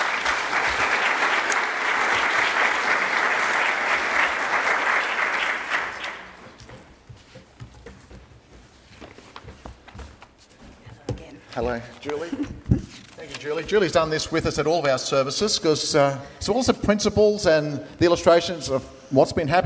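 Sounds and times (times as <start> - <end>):
church congregation clapping to welcome a guest during a service: 0.0 - 6.6
speech: 11.6 - 12.6, 13.4 - 19.6.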